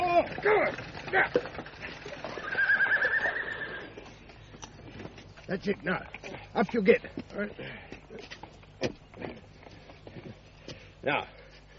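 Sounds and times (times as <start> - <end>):
hooves clattering: 0.0 - 11.7
outdoor noise: 0.0 - 11.7
speech: 0.3 - 1.7, 5.5 - 8.9, 11.0 - 11.4
horse neighing: 0.8 - 4.1.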